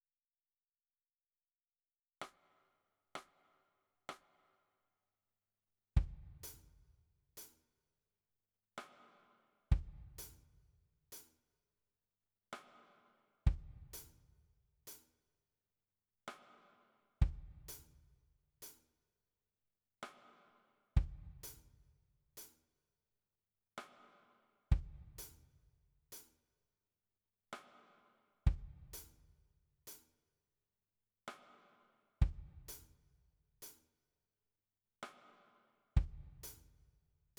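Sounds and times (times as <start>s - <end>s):
drums: 2.2s - 3.5s, 6.0s - 7.6s, 8.8s - 11.4s, 12.6s - 15.1s, 16.3s - 18.9s, 20.0s - 22.6s, 23.8s - 26.4s, 27.6s - 30.1s, 31.3s - 33.8s, 35.0s - 37.3s.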